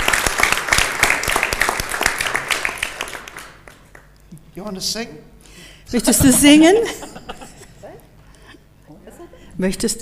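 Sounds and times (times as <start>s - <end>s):
audience applause: 0.0s - 4.1s
speech: 4.6s - 7.1s, 9.6s - 10.0s.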